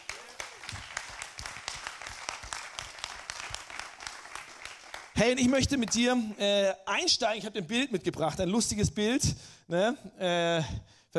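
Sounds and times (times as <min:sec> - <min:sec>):
audience applauding: 0:00.0 - 0:06.4
speech: 0:05.2 - 0:11.1.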